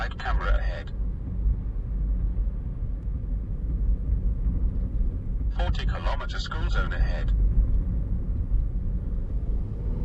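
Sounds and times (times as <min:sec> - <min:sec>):
car road rumble and engine drone on the Princes Highway: 0:00.0 - 0:10.0
speech: 0:05.7 - 0:07.4.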